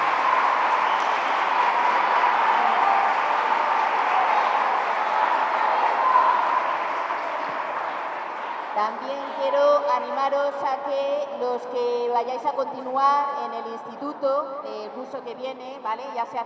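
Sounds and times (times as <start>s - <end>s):
audience applause: 0.0s - 9.4s
speech: 8.8s - 16.4s.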